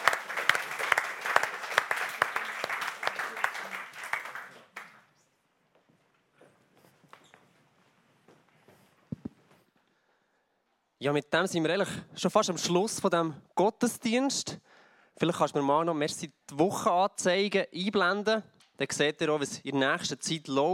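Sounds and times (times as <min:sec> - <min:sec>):
crowd applauding: 0:00.0 - 0:05.1
speech: 0:11.0 - 0:20.7.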